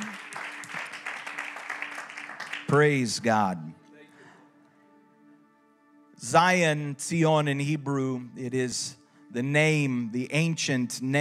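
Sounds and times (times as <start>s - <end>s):
audience clapping hands in praise: 0.0s - 3.2s
speech: 2.7s - 3.7s, 6.2s - 11.1s.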